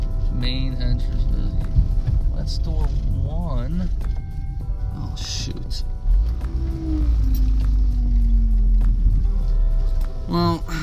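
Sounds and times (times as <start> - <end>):
car driving while looking for parking: 0.0 - 10.8
humming drone: 0.0 - 10.8
speech: 0.4 - 1.7, 2.4 - 4.1, 5.0 - 7.8.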